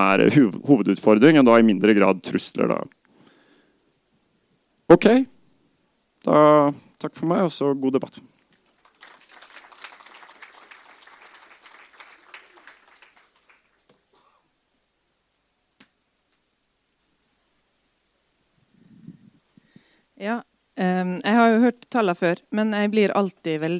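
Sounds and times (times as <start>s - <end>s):
speech: 0.0s - 3.0s, 4.9s - 5.3s, 6.2s - 8.3s, 20.2s - 23.7s
audience applause: 8.6s - 14.0s.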